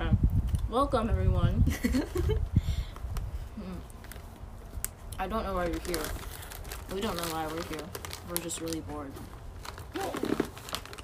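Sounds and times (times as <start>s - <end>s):
speech: 0.7s - 2.5s, 5.2s - 6.3s, 6.9s - 9.4s
rustling leaf chased by a cat: 1.9s - 11.0s.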